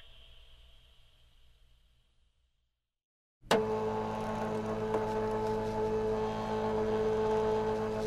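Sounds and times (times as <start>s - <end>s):
fax machine: 3.5s - 8.0s.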